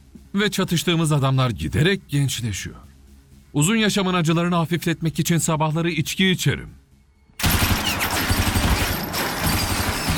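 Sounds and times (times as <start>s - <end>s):
speech: 0.4s - 2.9s, 3.6s - 6.8s
machine gun fire: 7.4s - 10.1s.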